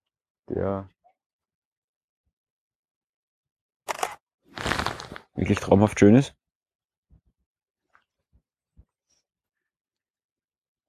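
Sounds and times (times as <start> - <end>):
speech: 0.5 - 1.0, 5.4 - 6.4
camera shutter click on a walk up the Marienhöhe: 3.9 - 4.2.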